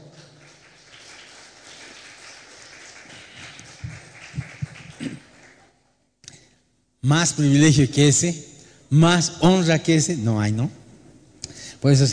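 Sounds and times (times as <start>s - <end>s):
audience applause: 0.0s - 5.8s
speech: 7.1s - 10.8s, 11.8s - 12.1s.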